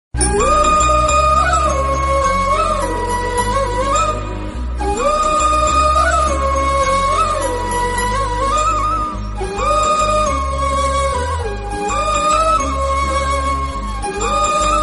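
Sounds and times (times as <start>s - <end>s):
Tamil love background music ringtone: 0.2s - 14.8s.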